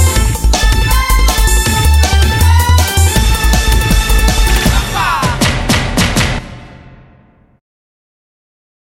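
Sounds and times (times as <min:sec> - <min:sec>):
samba bass mix: 0:00.0 - 0:06.8.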